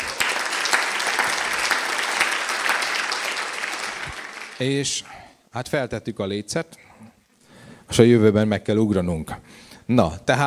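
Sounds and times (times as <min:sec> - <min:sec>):
applause: 0:00.0 - 0:04.8
speech: 0:04.6 - 0:06.9, 0:07.9 - 0:10.4.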